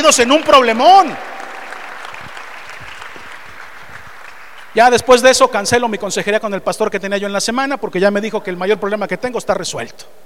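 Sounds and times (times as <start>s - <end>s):
speech: 0.0s - 1.3s, 4.8s - 10.2s
audience applause: 0.0s - 4.9s.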